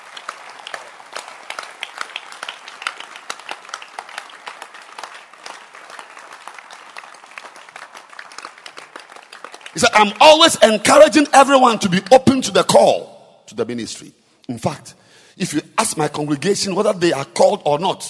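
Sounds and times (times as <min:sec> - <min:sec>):
crowd clapping hands: 0:00.0 - 0:11.8
speech: 0:09.8 - 0:18.0.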